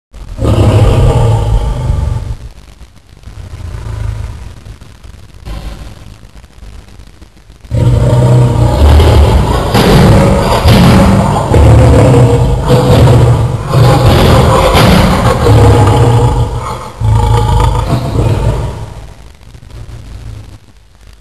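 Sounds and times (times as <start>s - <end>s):
lion: 0.3s - 2.4s, 7.7s - 19.2s.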